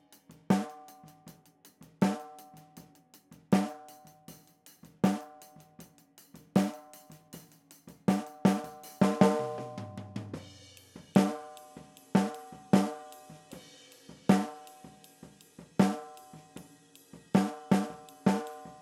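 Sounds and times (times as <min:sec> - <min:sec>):
snare drum: 0:00.5 - 0:01.1, 0:02.0 - 0:02.6, 0:03.6 - 0:04.0, 0:04.9 - 0:05.4, 0:06.6 - 0:07.2, 0:08.0 - 0:13.6, 0:14.3 - 0:15.1, 0:15.7 - 0:16.5, 0:17.4 - 0:18.8.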